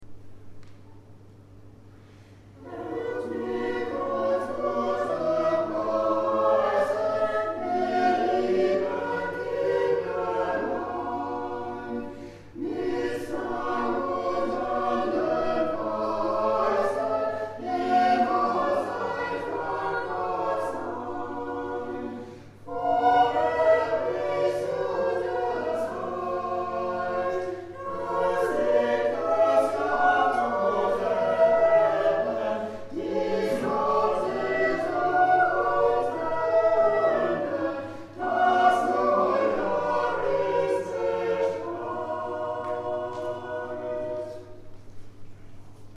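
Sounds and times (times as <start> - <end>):
choir singing: 2.6 - 44.9.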